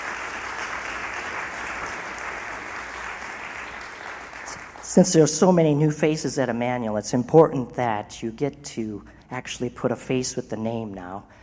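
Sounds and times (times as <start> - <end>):
audience applause: 0.0 - 5.0
speech: 4.9 - 11.4.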